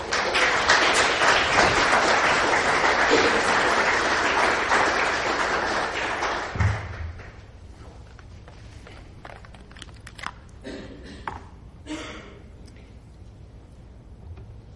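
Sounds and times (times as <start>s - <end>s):
audience applause at a lecture event welcoming a speaker: 0.0s - 7.4s.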